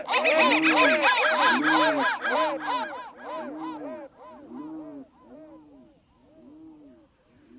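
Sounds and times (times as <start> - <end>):
crow cawing: 0.1 - 4.7.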